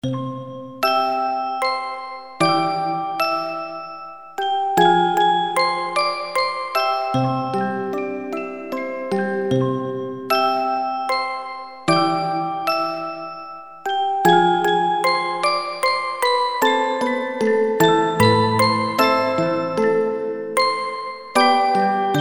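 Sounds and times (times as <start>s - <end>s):
music box: 0.0s - 22.1s.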